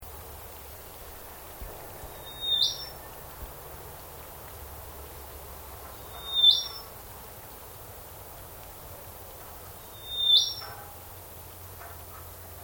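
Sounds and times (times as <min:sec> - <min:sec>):
unidentified bird species calling in a swamp: 0:02.1 - 0:03.2, 0:06.0 - 0:06.9, 0:09.8 - 0:10.8.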